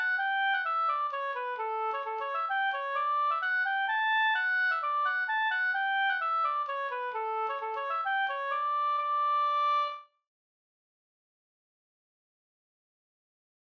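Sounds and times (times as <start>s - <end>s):
hambo polska folk dance tune: 0.0s - 10.0s.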